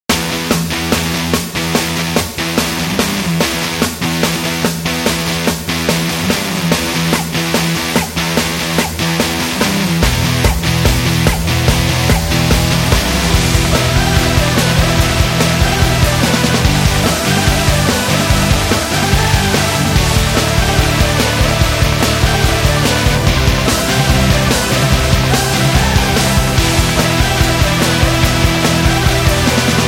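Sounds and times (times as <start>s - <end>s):
upbeat energetic indie rock: 0.1s - 29.8s.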